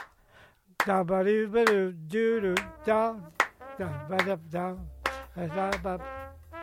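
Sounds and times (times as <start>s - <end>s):
rhythmic hand clapping: 0.0s - 0.2s, 0.8s - 1.9s, 2.5s - 6.3s.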